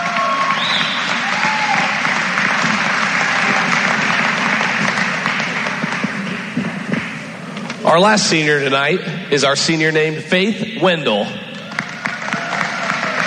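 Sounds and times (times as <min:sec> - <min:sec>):
whoops: 0:00.0 - 0:02.2, 0:11.6 - 0:13.2
audience applause: 0:00.0 - 0:07.8, 0:11.6 - 0:13.2
speech: 0:07.9 - 0:11.4.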